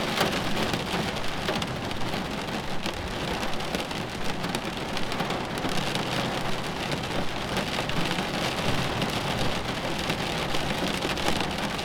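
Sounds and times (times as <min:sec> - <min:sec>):
rain pouring during a storm: 0:00.0 - 0:11.8.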